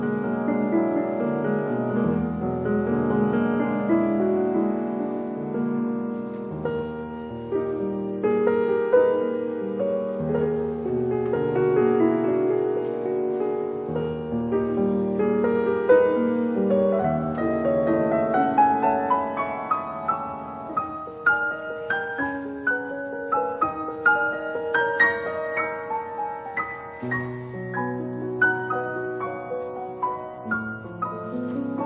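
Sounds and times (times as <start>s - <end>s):
solo piano: 0.0s - 31.8s.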